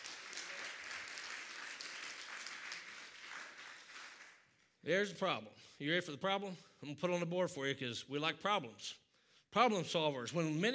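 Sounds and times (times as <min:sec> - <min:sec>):
audience hand clapping: 0:00.0 - 0:04.8
speech: 0:04.8 - 0:10.7.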